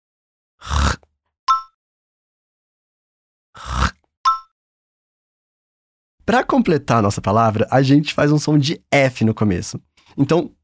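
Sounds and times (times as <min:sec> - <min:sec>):
guttural throat rattle like hawking: 0:00.6 - 0:01.1, 0:03.6 - 0:04.0
speech: 0:06.3 - 0:10.6.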